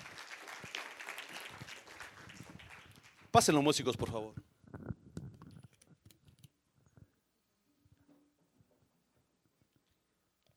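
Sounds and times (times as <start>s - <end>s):
audience applause: 0.0s - 3.4s
speech: 3.4s - 4.5s.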